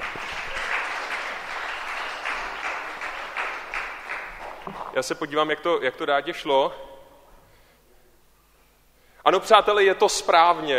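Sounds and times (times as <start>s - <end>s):
applause: 0.0s - 5.0s
speech: 5.0s - 6.9s, 9.3s - 10.7s.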